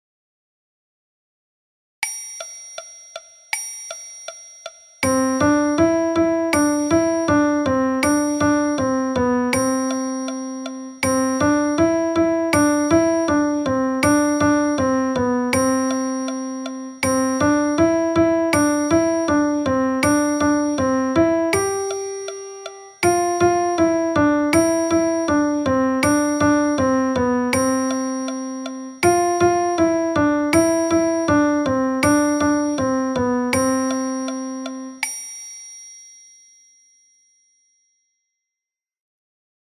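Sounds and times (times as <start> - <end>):
piano music: 5.1 - 35.0.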